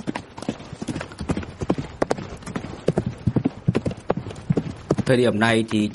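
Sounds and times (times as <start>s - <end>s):
horses galloping: 0.0s - 5.9s
speech: 5.1s - 5.9s.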